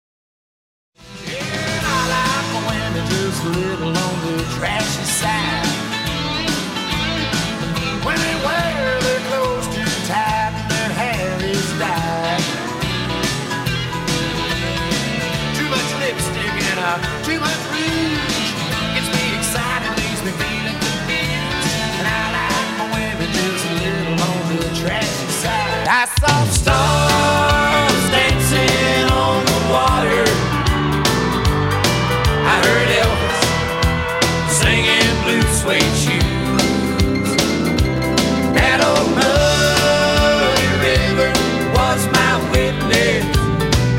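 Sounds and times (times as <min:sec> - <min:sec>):
background music bed: 0:01.0 - 0:43.9.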